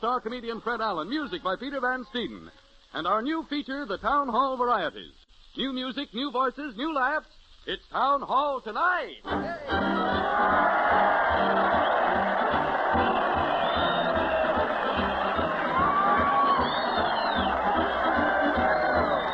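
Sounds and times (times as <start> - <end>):
speech: 0.0 - 11.7
large crowd cheering: 9.3 - 19.3
whoops and shouts: 9.4 - 19.3.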